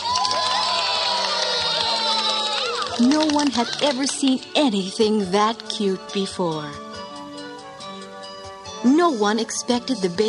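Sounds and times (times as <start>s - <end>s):
crowd cheering wildly: 0.0s - 4.1s
speech: 3.0s - 6.8s, 8.8s - 10.2s.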